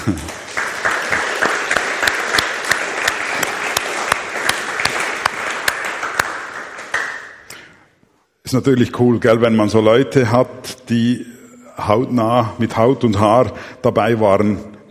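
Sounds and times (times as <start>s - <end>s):
speech: 0.0s - 0.4s, 8.5s - 14.8s
applause: 0.0s - 7.5s.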